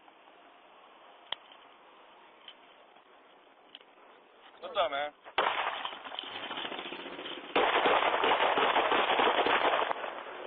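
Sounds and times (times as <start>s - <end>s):
speech: 4.6s - 5.5s
rumble: 5.3s - 10.4s
gunfire: 5.4s - 10.4s.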